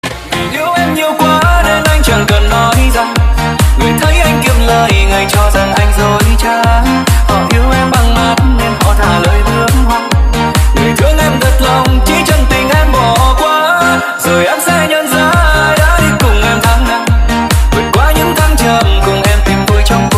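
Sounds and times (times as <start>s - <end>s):
remix music: 0.0s - 20.1s.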